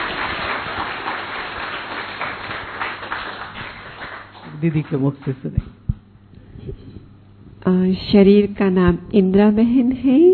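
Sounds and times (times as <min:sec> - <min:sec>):
crowd applauding: 0:00.0 - 0:05.7
speech: 0:04.6 - 0:05.8, 0:07.9 - 0:10.3.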